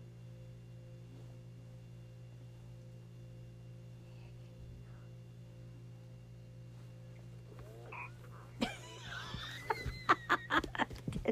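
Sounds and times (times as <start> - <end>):
baby burping: 7.8 - 8.4
laughter: 8.6 - 11.3.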